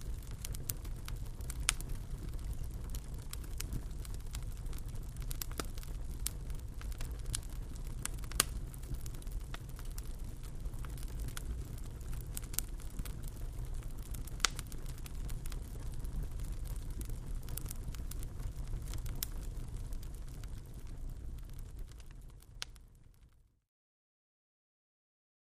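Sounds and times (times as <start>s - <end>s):
fireplace fire: 0.0s - 23.6s.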